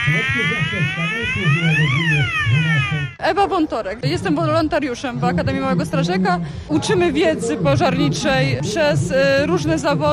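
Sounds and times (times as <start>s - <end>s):
fire engine siren: 0.0s - 3.2s
speech: 0.1s - 10.1s.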